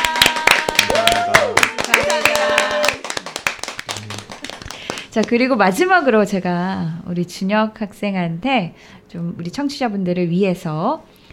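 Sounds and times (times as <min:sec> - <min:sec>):
applause: 0:00.0 - 0:05.4
speech: 0:05.2 - 0:11.1.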